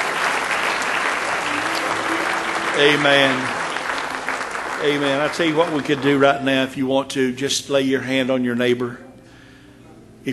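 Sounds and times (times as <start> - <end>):
audience hand clapping applause: 0.0 - 6.8
speech: 2.8 - 3.6, 4.8 - 9.0.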